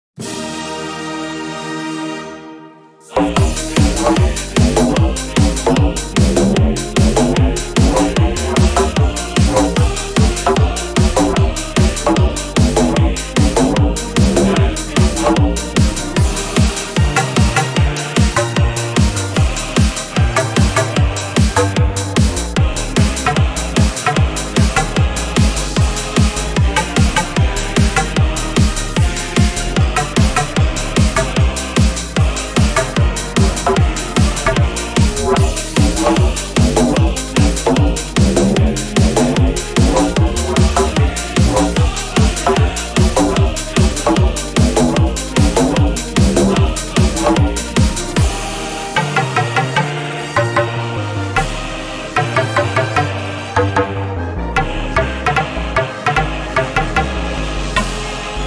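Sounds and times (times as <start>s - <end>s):
hardbass music: 3.1s - 58.4s.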